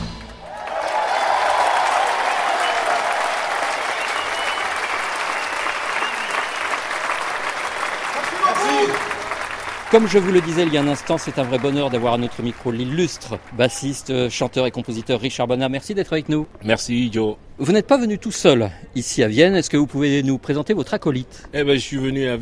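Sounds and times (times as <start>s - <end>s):
concert audience cheering and applause: 0.2s - 14.3s
speech: 10.0s - 22.3s.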